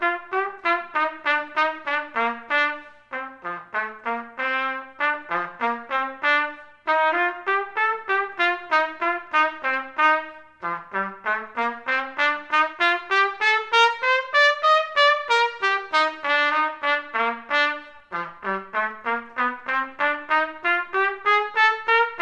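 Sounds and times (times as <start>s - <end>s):
trumpet playing a minuet: 0.0s - 22.1s.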